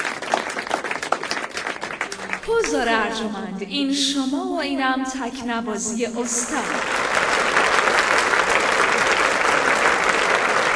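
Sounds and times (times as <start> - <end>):
audience clapping while waiting for a master musician: 0.0 - 3.0, 6.4 - 10.7
speech: 2.5 - 7.6.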